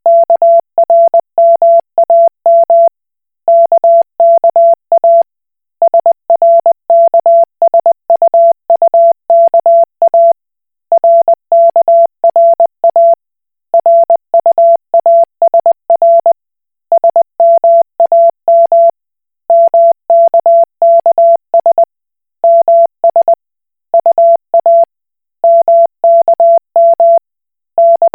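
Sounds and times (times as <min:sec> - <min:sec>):
Koch Morse code beeps: 0:00.1 - 0:02.9, 0:03.5 - 0:05.2, 0:05.8 - 0:07.4, 0:08.3 - 0:10.3, 0:11.0 - 0:13.2, 0:13.8 - 0:16.3, 0:16.9 - 0:18.9, 0:19.5 - 0:23.4, 0:24.0 - 0:27.2, 0:27.8 - 0:28.1.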